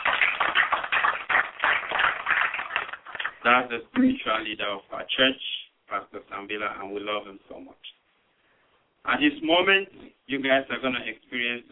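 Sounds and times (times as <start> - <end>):
audience applause for the pastor: 0.0 - 3.5
speech: 3.4 - 7.9, 9.0 - 11.7.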